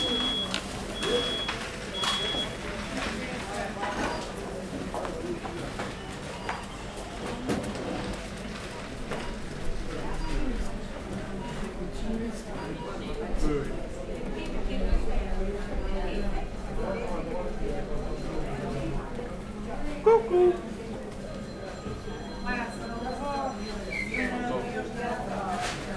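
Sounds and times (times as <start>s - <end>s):
ambience outside a grocery store in Venice Italy: 0.0s - 25.9s.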